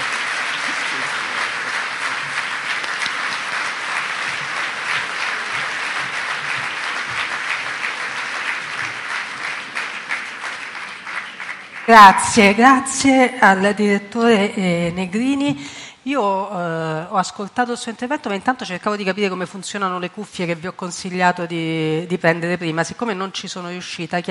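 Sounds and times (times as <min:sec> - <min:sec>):
audience applause: 0:00.0 - 0:12.0
speech: 0:11.9 - 0:24.3.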